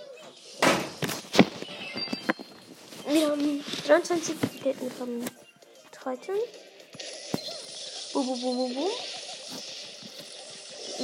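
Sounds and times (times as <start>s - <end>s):
door being closed: 0.6s - 1.0s
speech: 3.1s - 5.4s, 6.0s - 7.1s, 8.2s - 9.1s.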